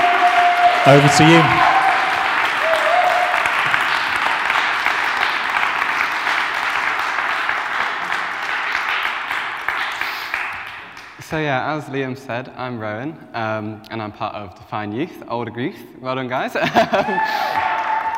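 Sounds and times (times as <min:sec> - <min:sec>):
audience applauding and cheering: 0:00.0 - 0:11.2, 0:17.0 - 0:18.1
speech: 0:00.8 - 0:01.7, 0:11.3 - 0:17.7
laughter: 0:16.6 - 0:18.0.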